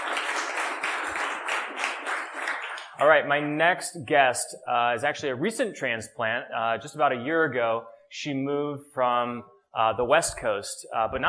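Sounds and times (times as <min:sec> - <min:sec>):
audience applause: 0:00.0 - 0:03.1
speech: 0:03.0 - 0:11.2.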